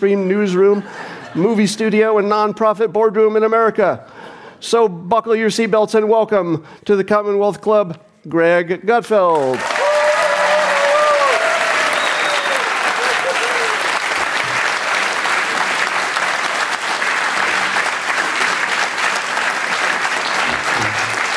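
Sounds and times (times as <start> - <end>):
speech: 0.0 - 9.7
audience applause: 9.4 - 21.3
faint cheers and whoops: 9.6 - 14.0.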